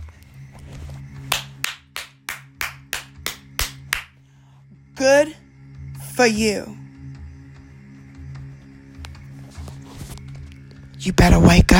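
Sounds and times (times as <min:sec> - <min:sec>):
loud hand clapping: 0:01.3 - 0:04.2
speech: 0:05.0 - 0:05.4, 0:06.2 - 0:06.8, 0:11.0 - 0:11.7.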